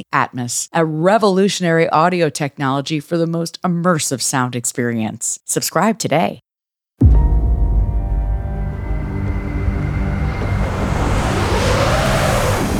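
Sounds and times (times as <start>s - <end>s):
speech: 0.0s - 7.1s
car engine droning on a snowy mountain road: 7.8s - 12.7s
tires and wind whooshing: 8.6s - 12.7s.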